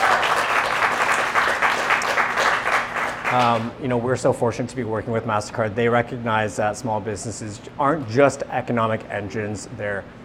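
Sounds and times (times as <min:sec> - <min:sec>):
audience applause: 0:00.0 - 0:03.7
speech: 0:03.3 - 0:10.2.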